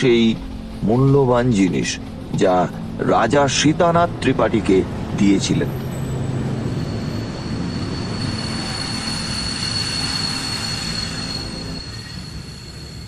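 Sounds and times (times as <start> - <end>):
speech: 0.0 - 5.8
train pulling into Bandar station: 0.0 - 13.0
train wheel squeal: 5.6 - 13.0.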